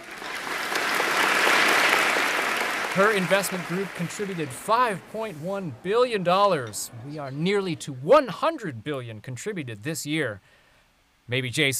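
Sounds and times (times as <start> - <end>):
round of applause from an audience: 0.0 - 5.3
speech: 3.0 - 10.6, 11.3 - 11.7.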